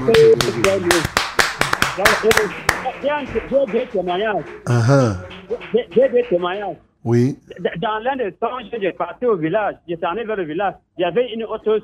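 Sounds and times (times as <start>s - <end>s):
speech: 0.0s - 1.2s, 2.0s - 11.8s
church congregation clapping during a service: 0.0s - 6.6s
sustained vocal tones: 4.7s - 5.3s.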